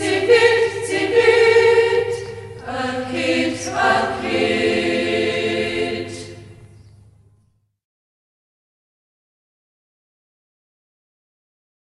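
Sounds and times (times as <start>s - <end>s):
chamber choir singing in Schässburg: 0.0s - 6.8s.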